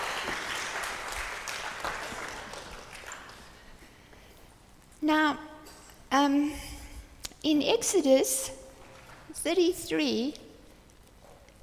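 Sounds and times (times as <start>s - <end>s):
audience applause: 0.0s - 3.7s
speech: 5.1s - 5.5s, 6.1s - 6.7s, 7.4s - 8.6s, 9.4s - 10.4s.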